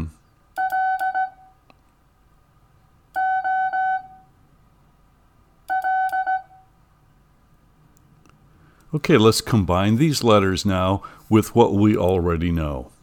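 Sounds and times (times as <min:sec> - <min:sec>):
Morse code beeps: 0:00.6 - 0:01.5, 0:03.2 - 0:04.2, 0:05.7 - 0:06.6
speech: 0:08.9 - 0:12.9.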